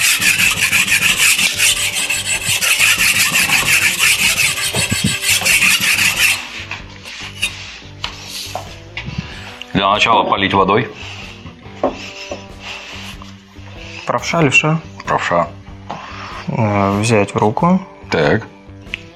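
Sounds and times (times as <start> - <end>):
knife being sharpened on a whetstone: 0.0 - 8.6, 11.0 - 13.4
quieter scrapes and taps: 0.0 - 9.3, 11.4 - 12.5
speech: 9.9 - 11.0, 14.2 - 15.6, 16.6 - 18.5.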